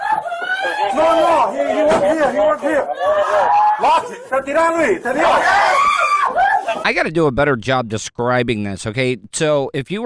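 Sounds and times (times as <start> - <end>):
woman screaming: 0.0 - 1.0, 5.4 - 6.8
laughter: 0.0 - 7.0
speech: 0.6 - 5.7, 6.8 - 10.0.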